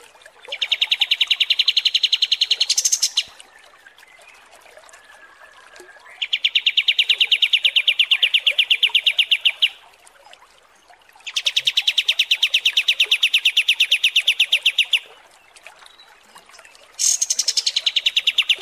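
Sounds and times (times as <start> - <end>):
kapas tembak song: 0.5 - 3.4, 6.0 - 9.8, 11.3 - 15.1, 17.0 - 18.6.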